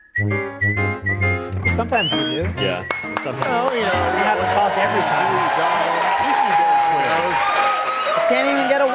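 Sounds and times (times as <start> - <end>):
speech: 0.2 - 0.5, 1.8 - 7.6, 8.2 - 8.9
crowd clapping: 1.6 - 8.9.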